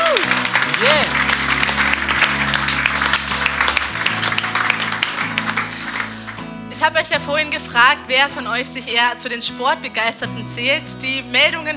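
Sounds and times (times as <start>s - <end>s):
audience applause: 0.0s - 6.5s
speech: 6.9s - 11.7s.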